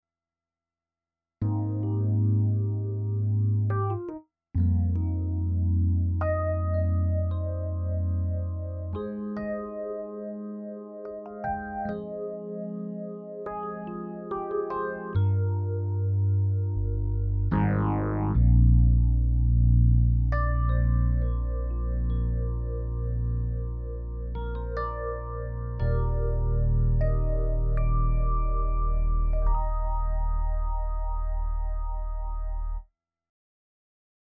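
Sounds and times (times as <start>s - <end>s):
Numa Concert electric piano: 1.4s - 32.9s.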